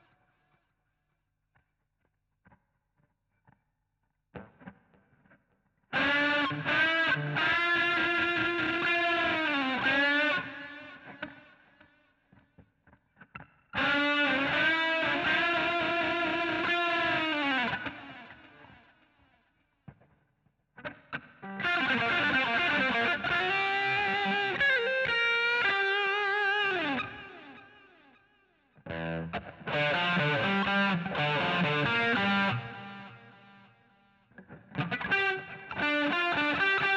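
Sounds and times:
guitar solo: 5.9s - 11.6s, 13.3s - 18.8s, 20.8s - 28.2s, 28.8s - 36.9s.

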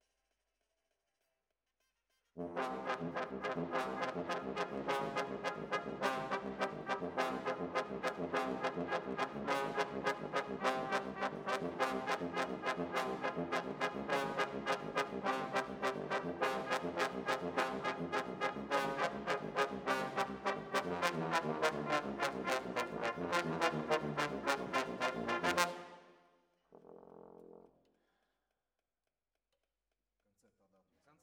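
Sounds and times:
brass instruments: 2.4s - 26.2s.

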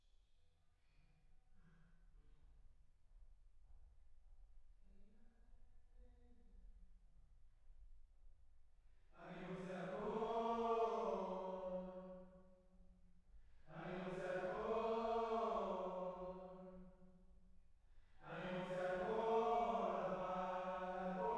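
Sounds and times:
choir singing: 9.2s - 12.4s, 13.7s - 17.2s, 18.2s - 21.3s.

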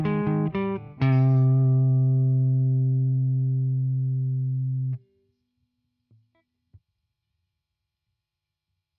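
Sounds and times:
guitar: 0.0s - 5.4s.

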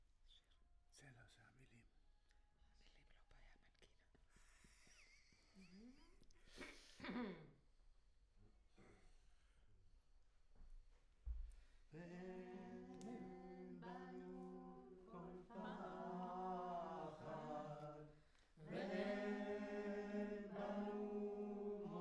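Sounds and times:
choir singing: 12.0s - 21.9s.

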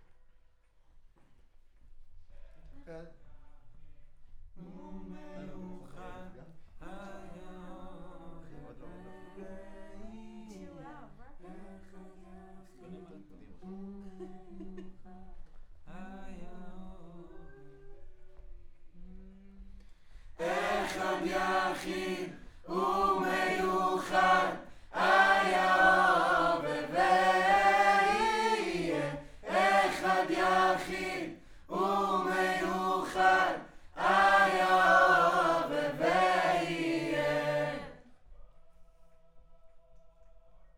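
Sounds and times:
choir singing: 5.4s - 10.8s, 20.4s - 38.1s.

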